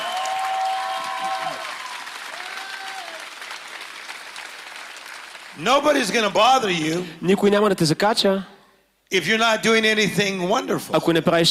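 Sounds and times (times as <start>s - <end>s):
audience applause: 0.0s - 6.6s
speech: 5.6s - 8.5s, 9.1s - 11.4s.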